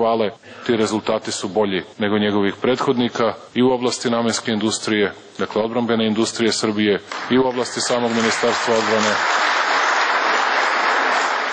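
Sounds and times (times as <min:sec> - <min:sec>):
speech: 0:00.0 - 0:09.6
ruling-party MPs applauding in the Serbian parliament: 0:07.1 - 0:11.5.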